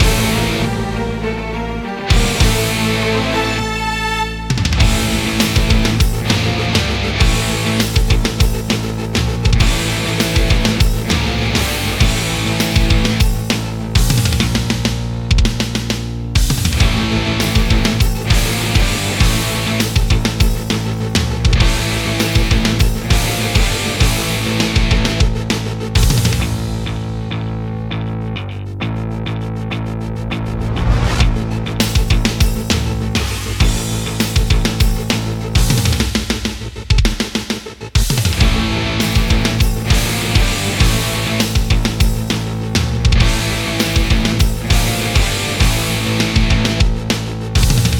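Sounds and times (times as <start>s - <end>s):
combat theme music: 0.0s - 47.9s.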